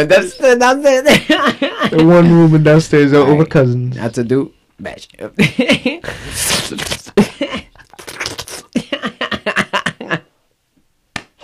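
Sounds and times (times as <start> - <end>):
speech: 0.0 - 7.7
slurping while eating: 6.2 - 7.1, 7.9 - 8.8.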